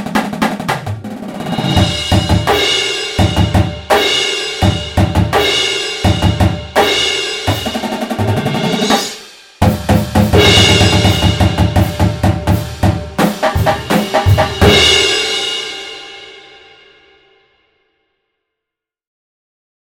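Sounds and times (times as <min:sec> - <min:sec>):
percussion: 0:00.0 - 0:15.9.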